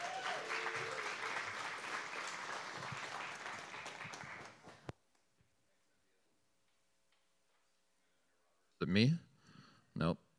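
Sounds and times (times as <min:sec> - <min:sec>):
audience applause welcoming a speaker at a Providence gathering: 0:00.0 - 0:04.9
speech: 0:08.8 - 0:09.2, 0:10.0 - 0:10.2.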